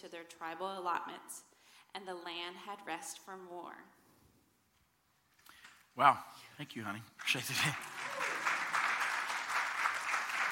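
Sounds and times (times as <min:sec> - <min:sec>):
speech: 0:00.0 - 0:04.0, 0:06.0 - 0:08.3
applause after scripture reading: 0:06.8 - 0:10.5.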